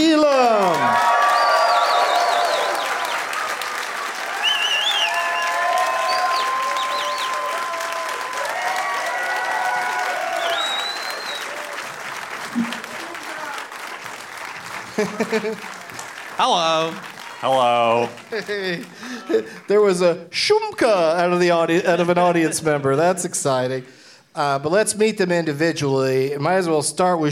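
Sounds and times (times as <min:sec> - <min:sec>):
audience applause and cheers welcoming three guests: 0:00.0 - 0:20.0
laughter: 0:12.4 - 0:13.4, 0:14.7 - 0:16.1, 0:18.1 - 0:19.8, 0:21.7 - 0:23.2
speech: 0:15.2 - 0:15.8, 0:16.4 - 0:27.3.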